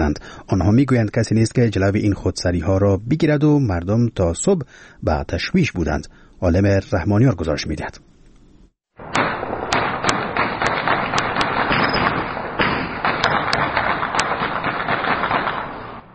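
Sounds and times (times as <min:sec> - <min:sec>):
speech: 0:00.1 - 0:08.1
celebratory light and heavy weapons fire at night in Sheberghan Afghanistan: 0:09.0 - 0:16.1.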